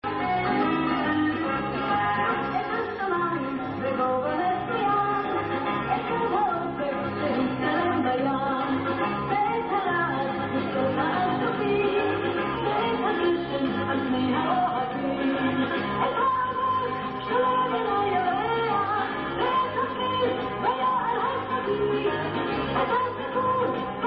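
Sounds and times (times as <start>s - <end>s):
tarantella dance music: 0.0s - 24.0s.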